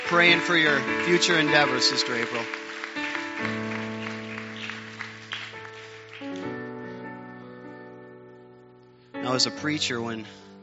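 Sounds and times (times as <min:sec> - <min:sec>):
audience clapping hands: 0:00.0 - 0:06.8
speech: 0:00.1 - 0:02.6, 0:09.3 - 0:10.5.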